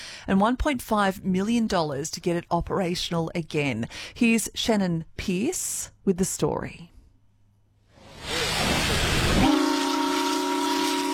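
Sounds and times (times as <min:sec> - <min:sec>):
speech: 0:00.3 - 0:06.9
steam hiss of an almost 120-year-old paddle steamer: 0:08.0 - 0:11.1.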